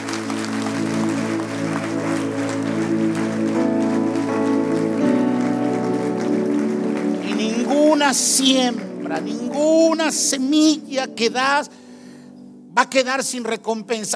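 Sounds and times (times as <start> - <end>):
audience applauding: 0.0 - 10.8
speech: 8.1 - 11.8, 12.8 - 14.1.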